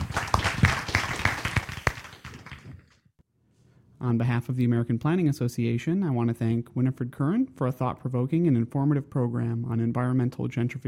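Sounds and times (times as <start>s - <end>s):
crowd clapping: 0.0s - 3.0s
speech: 4.0s - 10.8s.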